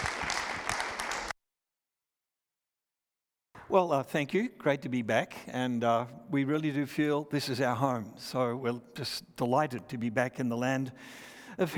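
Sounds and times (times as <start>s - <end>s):
audience clapping at an evening gathering: 0.0s - 1.3s
speech: 3.7s - 11.7s.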